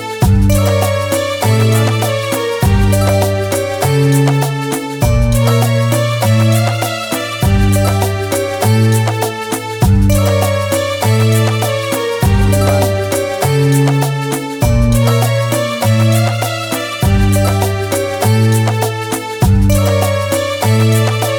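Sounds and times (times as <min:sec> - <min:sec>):
Arabian soundscape music bed: 0:00.0 - 0:21.3.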